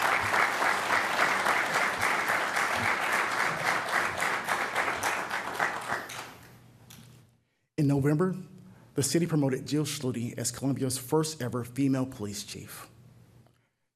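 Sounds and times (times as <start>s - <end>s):
round of applause: 0.0s - 6.6s
speech: 7.8s - 12.9s.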